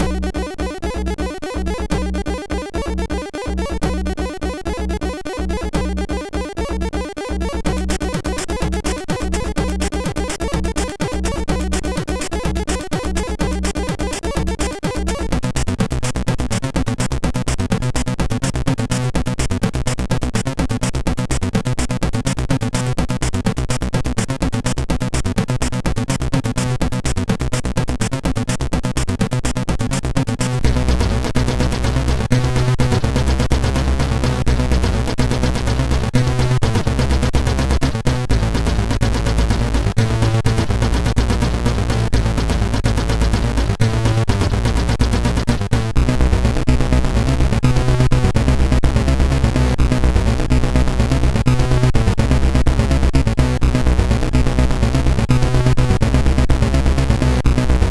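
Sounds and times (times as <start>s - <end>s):
major techno mix on SID MOS6581R4: 0.0s - 57.9s.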